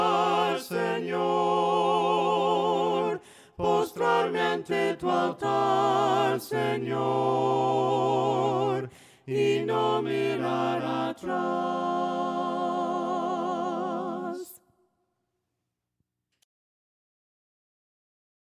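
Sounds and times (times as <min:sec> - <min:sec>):
voices singing hymns a cappella: 0:00.0 - 0:14.7.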